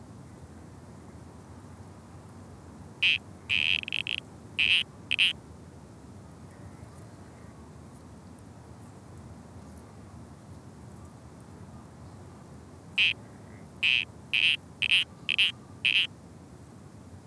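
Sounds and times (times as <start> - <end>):
spotted grass frog calling in Australia: 3.0 - 5.4, 13.8 - 16.1.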